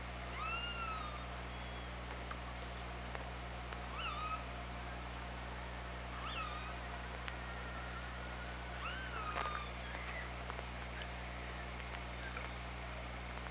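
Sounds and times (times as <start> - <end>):
Killer whale pulsed calls: 0.1 - 2.9, 3.7 - 13.3.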